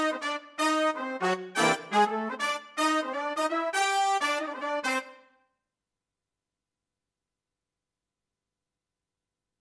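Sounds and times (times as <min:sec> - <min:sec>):
brass instruments: 0:00.0 - 0:05.3.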